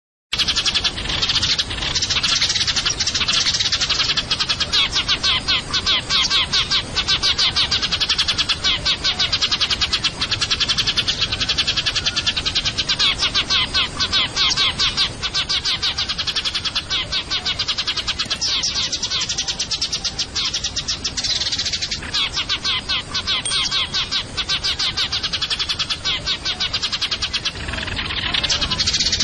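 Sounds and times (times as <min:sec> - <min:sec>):
Eurasian tree sparrow chirping rapidly: 0:00.3 - 0:29.2.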